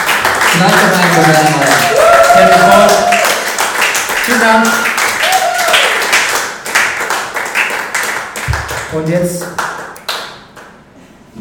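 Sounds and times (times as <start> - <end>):
crowd cheering: 0.0 - 7.8
audience applause: 0.0 - 10.3
speech: 0.6 - 3.2, 4.3 - 4.9, 8.9 - 9.7
sustained whoops: 1.6 - 3.4, 5.2 - 6.0.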